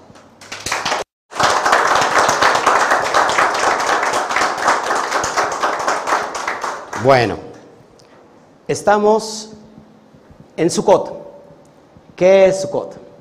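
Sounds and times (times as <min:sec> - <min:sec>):
audience applause: 0:00.4 - 0:07.2
speech: 0:07.0 - 0:07.5, 0:08.7 - 0:09.6, 0:10.6 - 0:11.2, 0:12.2 - 0:13.0.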